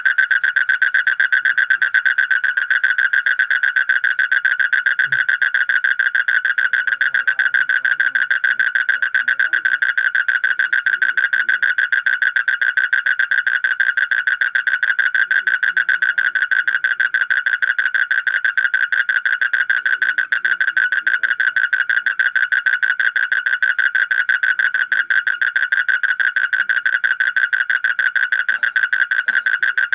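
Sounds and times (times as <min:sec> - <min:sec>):
Asian common toad trilling: 0:00.0 - 0:29.9.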